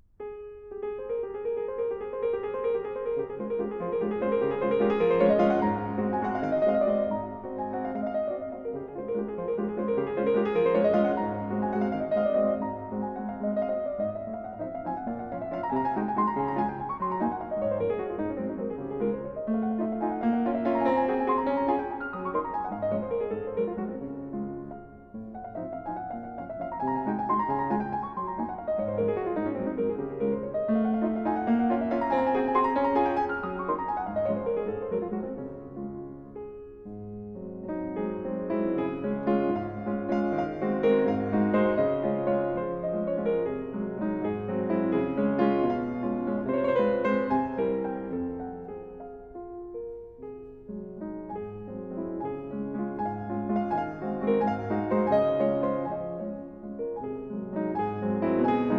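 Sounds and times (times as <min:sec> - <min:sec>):
waltz in D flat: 0:00.3 - 0:58.7.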